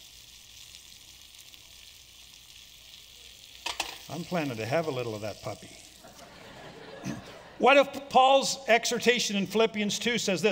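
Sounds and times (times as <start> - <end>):
food sizzling and frying in a pan: 0.0 - 7.5
speech: 4.1 - 5.9, 7.0 - 10.4
laughter: 6.0 - 8.0.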